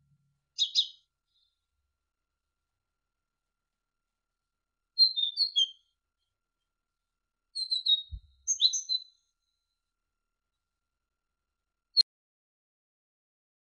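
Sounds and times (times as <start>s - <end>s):
great tit singing: 0.6s - 1.5s, 5.0s - 5.8s, 7.6s - 9.2s.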